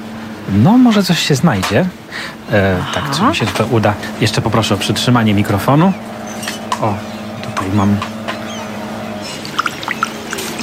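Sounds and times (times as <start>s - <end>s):
speech: 0.5s - 6.2s, 6.8s - 8.1s
sea-water plops and drips: 9.4s - 10.6s.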